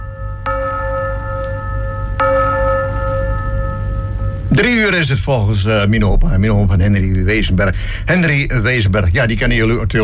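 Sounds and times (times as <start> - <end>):
carillon bells chiming: 0.0 - 5.0
steady low rumble: 0.0 - 10.0
speech: 4.5 - 10.0.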